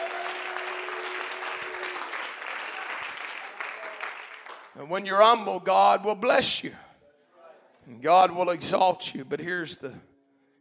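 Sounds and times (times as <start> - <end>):
audience clapping hands: 0.0 - 4.9
speech: 4.8 - 6.8, 7.9 - 10.1.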